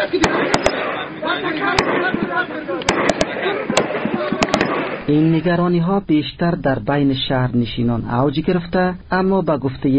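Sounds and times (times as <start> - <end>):
artillery and gunfire: 0.0 - 5.1
speech: 5.1 - 9.9.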